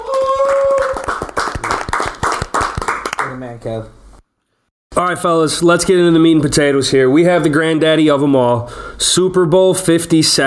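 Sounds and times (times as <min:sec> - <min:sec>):
round of applause: 0:00.0 - 0:03.4
speech: 0:03.4 - 0:04.0, 0:05.0 - 0:10.4.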